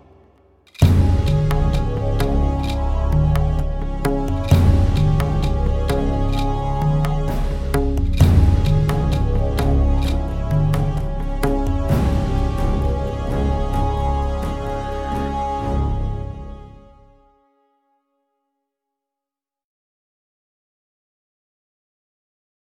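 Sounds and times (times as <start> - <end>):
background music: 0.0 - 17.8.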